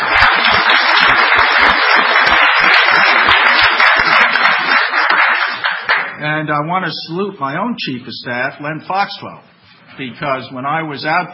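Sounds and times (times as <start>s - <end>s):
crowd applauding: 0.0s - 6.2s
speech: 6.4s - 11.3s.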